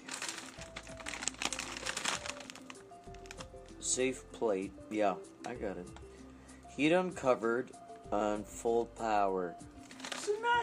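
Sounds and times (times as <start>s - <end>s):
plastic food wrapper crinkling: 0.0s - 3.6s, 9.8s - 10.6s
speech: 3.9s - 6.1s, 6.8s - 9.7s, 10.5s - 10.6s.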